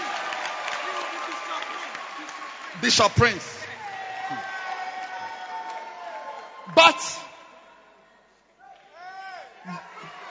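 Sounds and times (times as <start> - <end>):
audience clapping: 0.0 - 7.0
speech: 2.8 - 3.6, 6.8 - 7.3.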